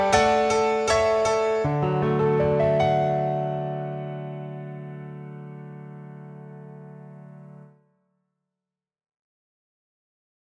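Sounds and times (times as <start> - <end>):
mini grand piano played hard: 0.0 - 7.7.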